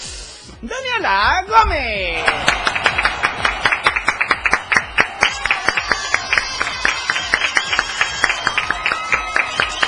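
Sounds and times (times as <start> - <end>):
speech: 0.6 - 2.7
loud applause: 2.2 - 9.8.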